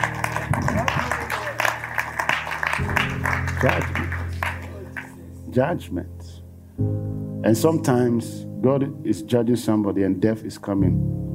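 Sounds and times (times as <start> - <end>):
audience clapping: 0.0 - 5.4
speech: 3.6 - 4.0, 5.6 - 6.2, 6.8 - 11.3.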